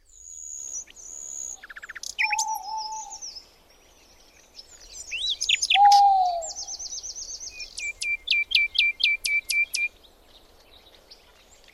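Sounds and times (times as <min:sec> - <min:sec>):
bird singing short rising slurred notes: 0:00.8 - 0:03.4, 0:04.9 - 0:09.9.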